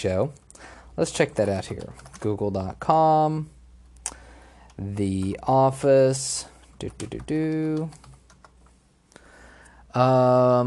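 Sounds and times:
speech: 0:00.0 - 0:00.4, 0:01.0 - 0:03.6, 0:04.8 - 0:08.1, 0:10.0 - 0:10.6
typing on a computer keyboard: 0:00.4 - 0:02.8, 0:04.6 - 0:05.5, 0:06.6 - 0:08.8.

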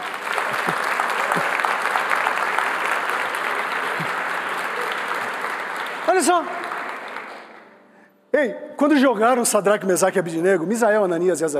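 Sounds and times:
audience applause: 0:00.0 - 0:07.7
speech: 0:06.2 - 0:06.7, 0:08.3 - 0:11.5.

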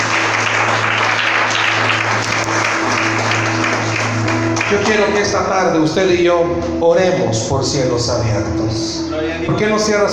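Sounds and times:
audience applause: 0:00.0 - 0:05.3
speech: 0:04.8 - 0:10.1.

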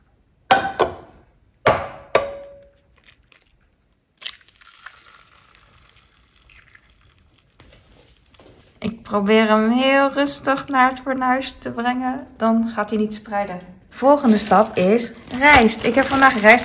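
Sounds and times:
egg being cracked: 0:04.2 - 0:07.6
egg frying in a hot pan: 0:04.2 - 0:08.4
speech: 0:09.1 - 0:16.6.

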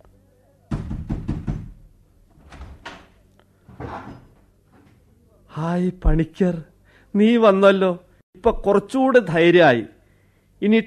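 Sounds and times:
door being opened in a radio drama: 0:00.7 - 0:03.2
speech: 0:05.6 - 0:10.0, 0:10.6 - 0:10.8.

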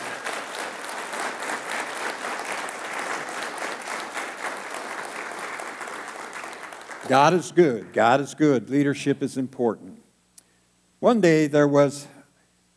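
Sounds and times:
audience applauding: 0:00.0 - 0:07.9
speech: 0:07.0 - 0:09.9, 0:11.0 - 0:12.1.

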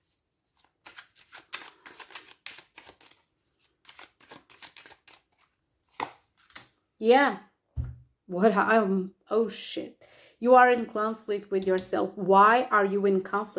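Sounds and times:
crystal tarot card deck being shuffled and drawn from: 0:00.0 - 0:06.8
speech: 0:07.0 - 0:07.5, 0:08.3 - 0:13.5.

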